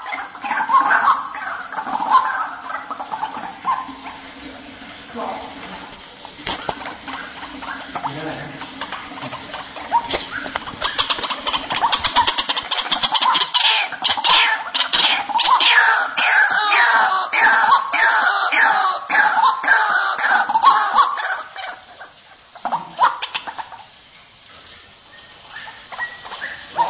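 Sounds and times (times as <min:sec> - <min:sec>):
white-breasted waterhen clipped rising notes and harsh croaking calls used as a lure: 0:00.0 - 0:05.9, 0:06.5 - 0:26.8.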